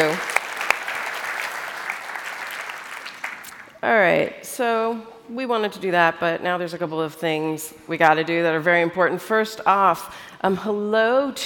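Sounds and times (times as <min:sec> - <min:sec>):
audience round of applause: 0:00.0 - 0:03.8
speech: 0:03.8 - 0:11.4.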